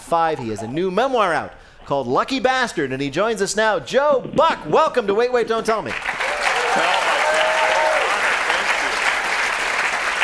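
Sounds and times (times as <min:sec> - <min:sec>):
speech: 0:00.1 - 0:06.2, 0:06.8 - 0:07.0
audience laughing and clapping: 0:05.9 - 0:10.2.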